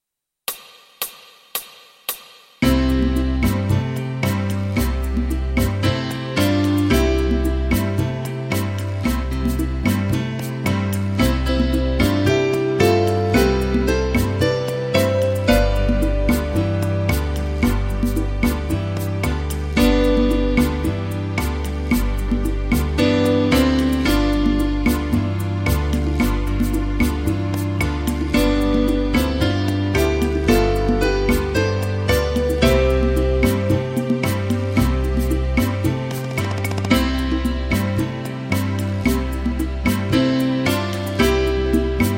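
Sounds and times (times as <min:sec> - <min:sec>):
piano tutti: 0:02.6 - 0:42.1.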